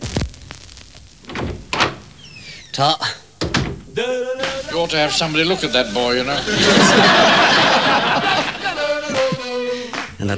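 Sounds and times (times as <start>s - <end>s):
door shutting: 1.2s - 2.8s, 3.4s - 4.7s
speech: 2.8s - 3.2s, 4.0s - 8.4s
laughter: 4.0s - 10.3s.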